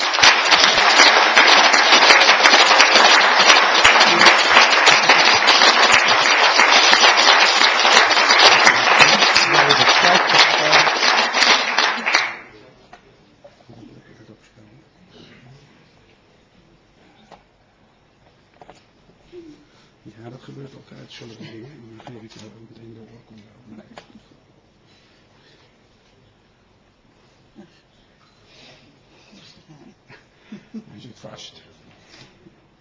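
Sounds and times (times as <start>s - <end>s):
loud applause from a large crowd: 0.0s - 12.5s.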